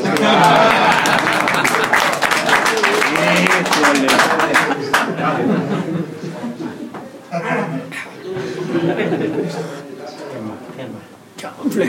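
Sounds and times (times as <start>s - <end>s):
crowd applause: 0.0s - 6.2s
laughter: 0.0s - 9.9s
voices: 0.0s - 11.8s.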